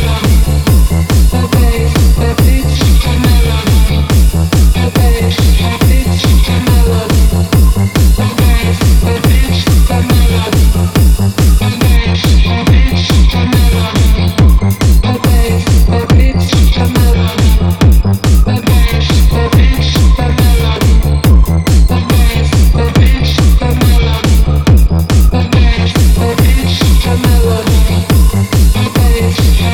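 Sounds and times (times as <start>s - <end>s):
bass beats: 0.0s - 29.7s.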